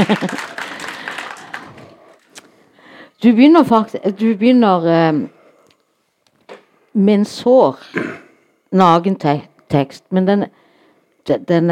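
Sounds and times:
speech: 0.0 - 0.5, 3.2 - 5.4, 6.9 - 10.6, 11.2 - 11.7
laughter: 0.0 - 1.4
audience clapping: 0.0 - 2.3.

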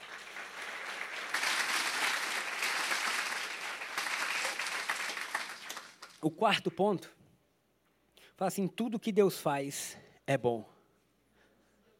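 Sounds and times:
audience applauding: 0.0 - 6.2
speech: 6.2 - 7.2, 8.4 - 10.7.

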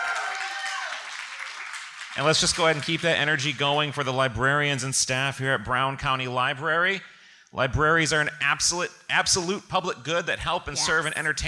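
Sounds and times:
audience cheering and whooping: 0.0 - 1.3
audience applause: 0.0 - 3.0
speech: 2.2 - 11.4.

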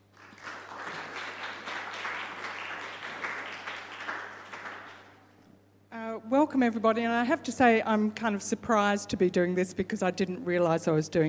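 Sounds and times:
audience applause welcoming a speaker: 0.0 - 5.2
speech: 6.3 - 11.2.

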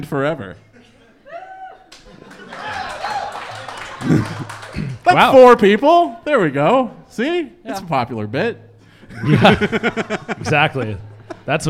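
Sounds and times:
speech: 0.0 - 0.7, 4.0 - 11.6
laughter: 0.7 - 5.4, 9.1 - 11.6
audience applause: 1.9 - 5.4.

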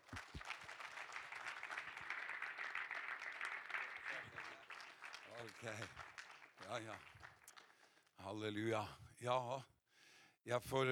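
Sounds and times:
audience applause: 0.0 - 7.9
speech: 5.4 - 6.1, 6.7 - 7.2, 8.2 - 9.7, 10.4 - 10.9.

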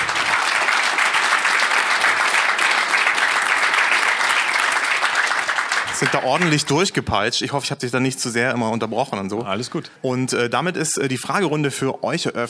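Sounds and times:
applause: 0.0 - 6.7
speech: 6.0 - 12.4.

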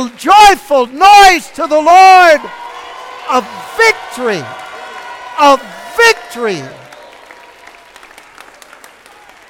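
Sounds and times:
speech: 0.0 - 2.6, 3.3 - 4.6, 5.4 - 6.8
audience clapping hands: 0.0 - 9.4.

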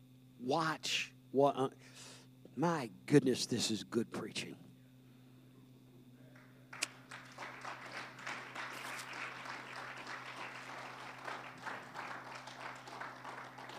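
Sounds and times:
speech: 0.4 - 4.6
audience applause: 6.4 - 13.7.

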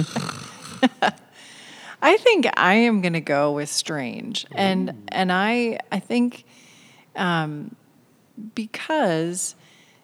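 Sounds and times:
speech: 0.0 - 0.3, 0.9 - 1.2, 2.0 - 6.6, 7.2 - 7.8, 8.4 - 9.6
person playfully imitating snoring with raspy snorts: 0.0 - 0.8, 4.4 - 5.6.

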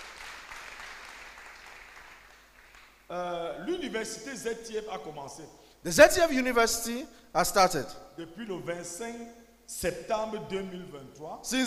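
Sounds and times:
audience clapping: 0.0 - 3.1
speech: 3.1 - 11.6.

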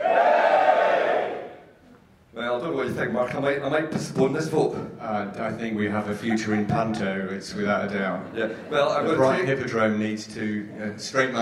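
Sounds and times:
audience cheering and yelling: 0.0 - 1.6
speech: 2.6 - 11.4.

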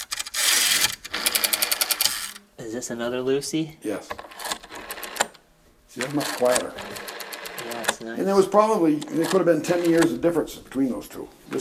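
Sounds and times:
rotary phone being dialed: 0.0 - 2.4, 4.2 - 5.4, 6.0 - 8.1, 9.0 - 10.2
speech: 2.7 - 4.3, 6.0 - 11.5.

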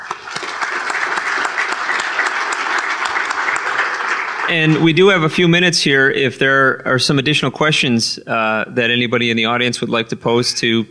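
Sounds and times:
audience round of applause: 0.0 - 5.3
speech: 4.5 - 10.8.

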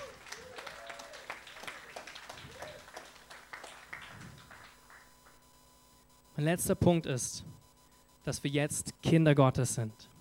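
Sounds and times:
audience applause: 0.0 - 5.1
speech: 6.4 - 7.5, 8.2 - 10.1.

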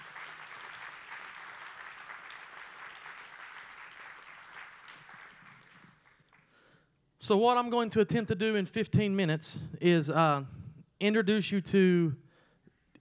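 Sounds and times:
audience hand clapping: 0.0 - 6.6
speech: 7.2 - 12.2.

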